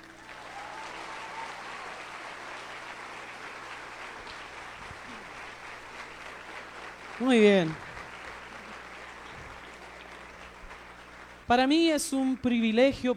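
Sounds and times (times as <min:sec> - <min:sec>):
audience applause: 0:00.0 - 0:12.9
speech: 0:07.2 - 0:07.8, 0:11.5 - 0:13.1.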